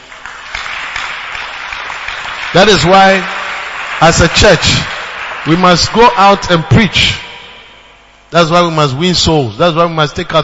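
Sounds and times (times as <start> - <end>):
crowd clapping together: 0.0 - 7.5
speech: 2.5 - 3.4, 4.0 - 7.2, 8.3 - 10.4.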